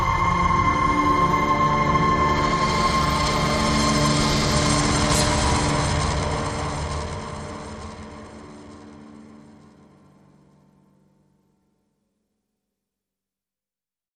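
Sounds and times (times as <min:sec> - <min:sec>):
FX drones: 0:00.0 - 0:10.5.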